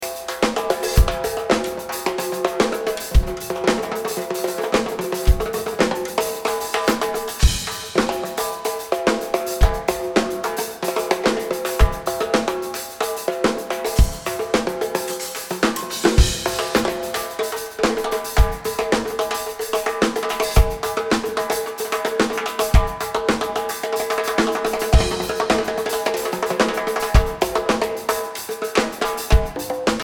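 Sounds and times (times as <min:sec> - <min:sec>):
drums: 0:00.0 - 0:30.0.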